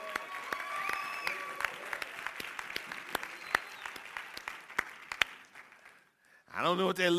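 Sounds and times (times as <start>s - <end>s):
audience clapping: 0.0s - 6.8s.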